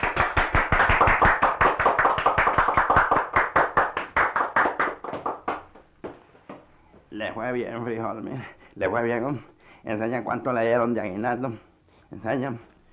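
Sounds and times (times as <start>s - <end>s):
audience applause: 0.0s - 5.8s
speech: 7.4s - 12.7s.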